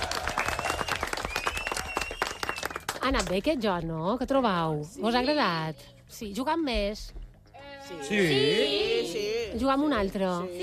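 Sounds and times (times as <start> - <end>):
loud applause: 0.0 - 3.0
speech: 3.0 - 7.2, 7.9 - 10.6.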